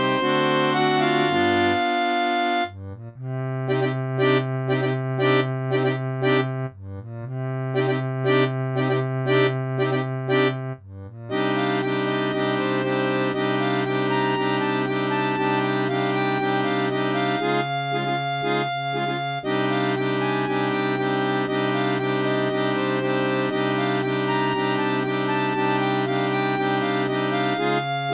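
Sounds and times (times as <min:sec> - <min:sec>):
synthesized harmonica audio: 0:00.0 - 0:28.1.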